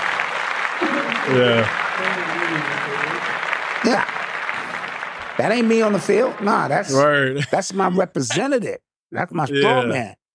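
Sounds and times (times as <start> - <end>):
hands clapping: 0.0 - 7.0
voices calling out and cheering: 0.7 - 7.4
speech: 0.9 - 4.2, 5.4 - 10.2.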